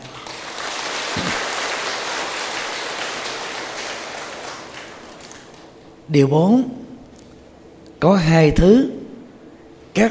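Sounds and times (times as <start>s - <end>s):
audience applause: 0.0s - 5.7s
speech: 6.1s - 6.8s, 8.0s - 9.0s.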